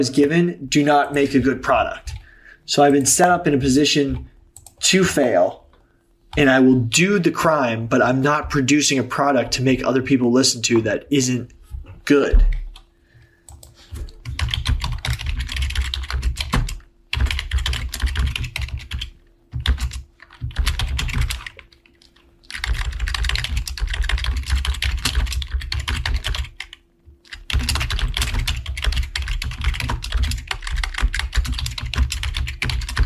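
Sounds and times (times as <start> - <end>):
speech: 0.0 - 2.1, 2.7 - 5.6, 6.4 - 12.6
typing on a computer keyboard: 13.5 - 33.0.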